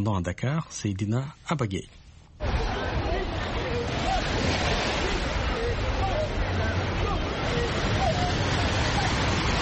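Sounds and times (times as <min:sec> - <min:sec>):
speech: 0:00.0 - 0:02.0
surf rushing at a busy beach: 0:02.4 - 0:09.6.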